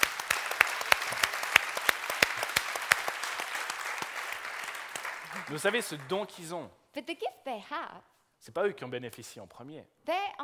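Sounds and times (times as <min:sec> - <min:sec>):
audience applause for musicians: 0:00.0 - 0:06.6
speech: 0:05.5 - 0:10.4.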